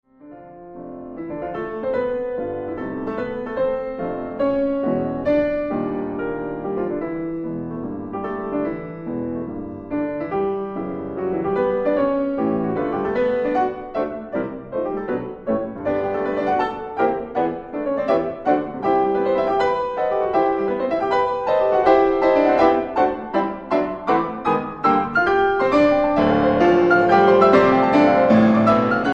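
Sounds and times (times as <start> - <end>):
piano prelude: 0.0 - 29.1.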